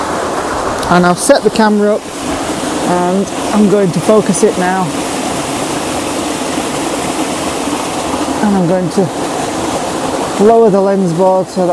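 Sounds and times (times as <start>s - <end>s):
waterfall: 0.0s - 11.7s
speech: 0.9s - 2.1s, 2.9s - 5.0s, 8.4s - 9.2s, 10.4s - 11.7s.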